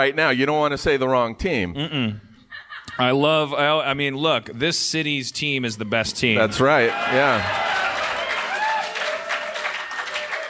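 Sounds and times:
speech: 0.0 - 2.3, 3.0 - 7.6
cheering voices: 6.4 - 10.4
large live audience applause: 6.6 - 10.4.

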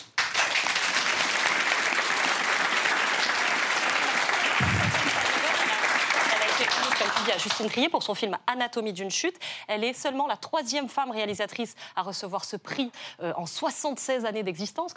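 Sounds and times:
applause: 0.0 - 7.9
speech: 7.3 - 14.9.

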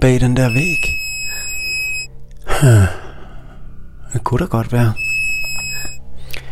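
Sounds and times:
speech: 0.0 - 1.0, 2.6 - 3.0, 4.1 - 5.0
high electronic beep from a bug-detecting device: 0.4 - 2.1, 5.0 - 6.0.

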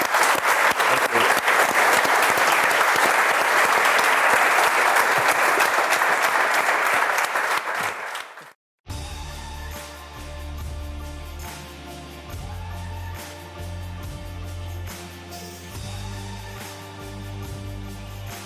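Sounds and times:
live audience applause: 0.0 - 8.6.

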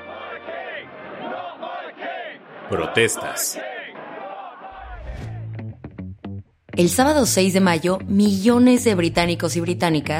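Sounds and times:
crowd shouting and cheering at coronation: 0.0 - 5.7
speech: 2.7 - 3.8, 6.8 - 10.1.

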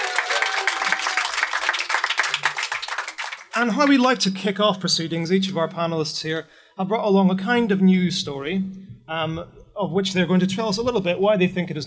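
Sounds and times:
audience applause in festival tent at Green Man Festival: 0.0 - 4.0
speech: 3.6 - 11.8.

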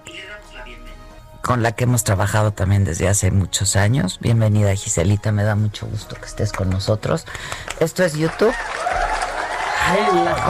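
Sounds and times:
speech: 1.4 - 9.0, 9.8 - 10.4
applause: 6.2 - 10.4.

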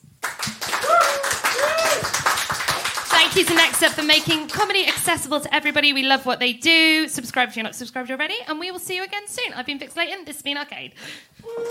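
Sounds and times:
audience applause: 0.2 - 4.5
speech: 3.4 - 11.6
whoops and whistles from crowd: 11.4 - 11.6.

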